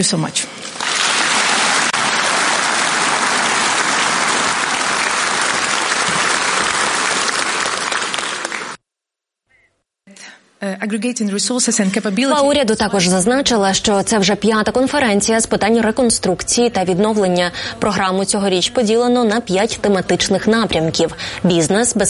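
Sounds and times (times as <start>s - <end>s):
speech: 0.0s - 0.7s, 10.6s - 22.0s
audience applause in a conference hall: 0.7s - 8.8s.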